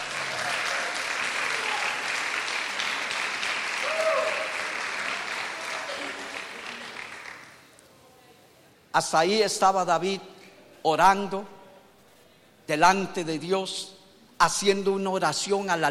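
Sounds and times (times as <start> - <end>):
audience applause: 0.0 - 7.6
person cheering: 1.4 - 2.0, 3.8 - 4.6
speech: 9.0 - 11.6, 12.7 - 15.8.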